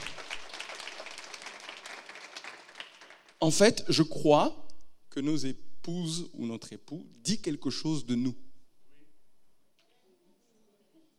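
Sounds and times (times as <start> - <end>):
audience applause: 0.0 - 3.4
speech: 3.5 - 4.6, 5.2 - 8.4.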